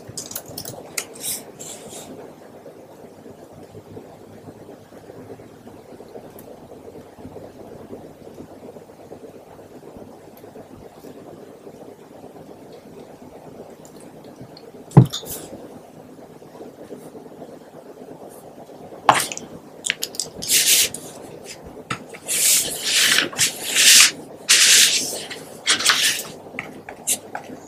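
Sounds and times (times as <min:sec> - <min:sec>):
low steady hum: 0:00.0 - 0:27.6
pen writing with scratchy strokes: 0:20.4 - 0:27.5.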